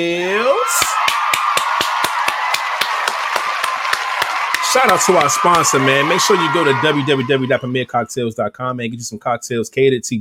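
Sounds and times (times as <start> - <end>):
speech: 0.0 - 0.8, 4.7 - 10.1
round of applause: 0.6 - 7.9.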